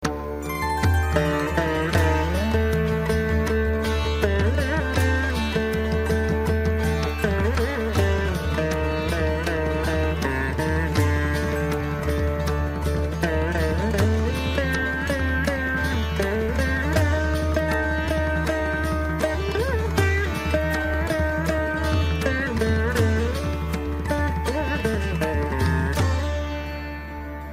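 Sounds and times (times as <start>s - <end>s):
sitar: 0.0s - 27.5s.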